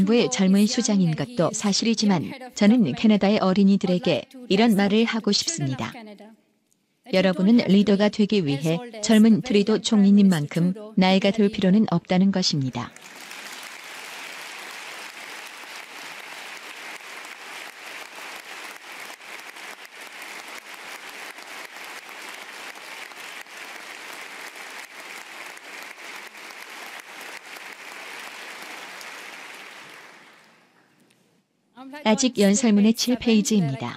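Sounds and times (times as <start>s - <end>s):
speech: 0.0s - 6.1s, 7.1s - 13.0s, 32.1s - 33.9s
standing ovation applause: 12.9s - 30.8s.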